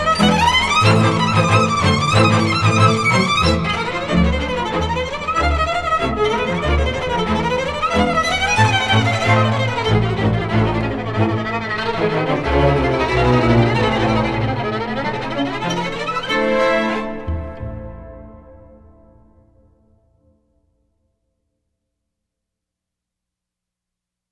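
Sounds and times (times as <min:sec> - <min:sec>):
fast classical piece: 0:00.0 - 0:18.8.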